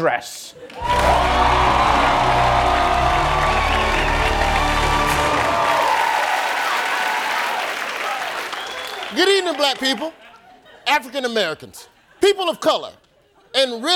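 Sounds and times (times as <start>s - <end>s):
speech: 0.0s - 2.2s, 9.1s - 10.2s, 10.9s - 13.0s, 13.6s - 13.9s
studio audience applause: 0.7s - 10.2s
studio audience cheering with whoops and shouts: 0.8s - 9.2s.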